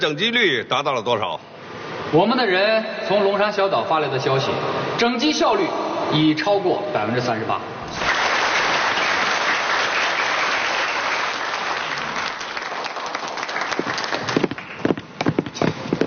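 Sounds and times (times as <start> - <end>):
speech: 0.0 - 8.1
audience applause: 8.0 - 14.9.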